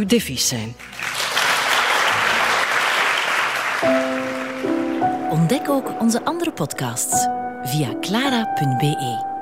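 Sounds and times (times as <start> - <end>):
speech: 0.0 - 1.2, 5.5 - 9.3
audience applauding: 0.8 - 5.8.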